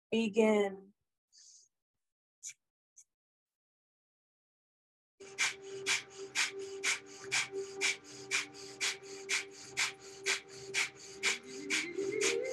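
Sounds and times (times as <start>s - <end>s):
breath of fire yoga breathing with forceful nasal exhalations: 5.2s - 12.5s.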